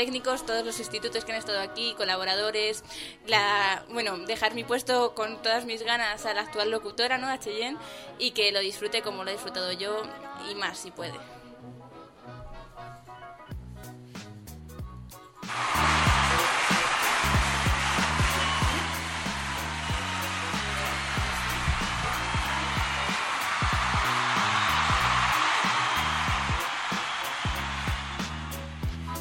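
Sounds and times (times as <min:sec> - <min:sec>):
speech: 0:00.0 - 0:11.4
emotional applause: 0:15.5 - 0:29.0.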